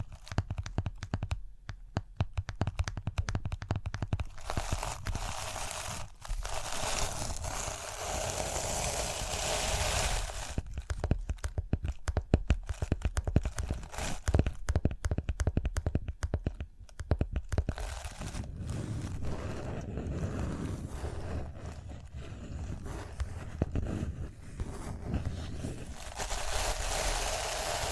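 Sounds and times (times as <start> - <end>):
rhinestone tapping: 0.0 - 5.2, 10.4 - 18.0
rhinestone brushing and scratching: 3.9 - 12.0, 12.6 - 14.6, 17.6 - 27.9.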